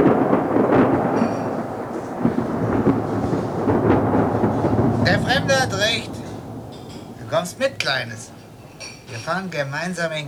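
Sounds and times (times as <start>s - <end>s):
thunder from a thunderstorm: 0.0s - 9.5s
speech: 5.2s - 6.1s, 7.3s - 8.3s, 9.1s - 10.2s.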